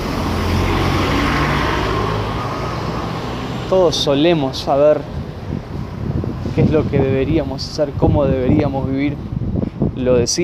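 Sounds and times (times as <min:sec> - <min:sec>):
buses passing: 0:00.0 - 0:08.0
speech: 0:03.7 - 0:05.6, 0:06.6 - 0:09.3, 0:10.0 - 0:10.4.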